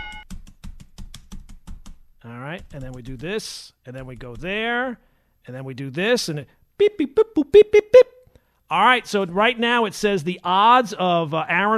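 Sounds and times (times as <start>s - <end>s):
typing on computer keys: 0.0s - 2.0s, 2.6s - 3.3s, 3.9s - 4.7s
speech: 2.2s - 11.7s.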